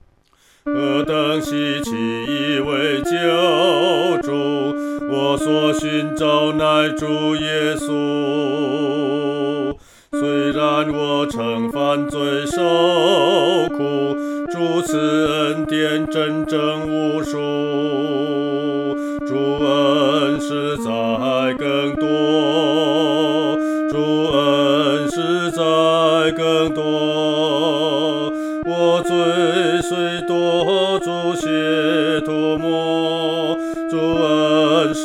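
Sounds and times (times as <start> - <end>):
solo singing, second voice: 0.7 - 35.0.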